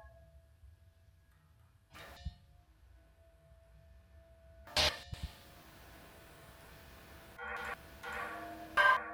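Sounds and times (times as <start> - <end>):
percussion: 2.0 - 2.4, 4.7 - 9.1.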